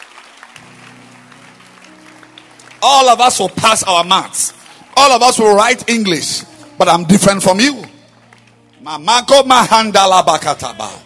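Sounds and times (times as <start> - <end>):
audience clapping: 0.0 - 11.0
speech: 2.8 - 7.9, 8.8 - 11.0.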